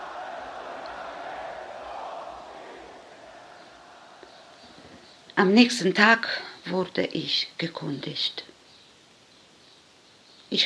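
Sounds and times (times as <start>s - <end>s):
people shouting: 0.0s - 5.1s
speech: 5.4s - 8.5s.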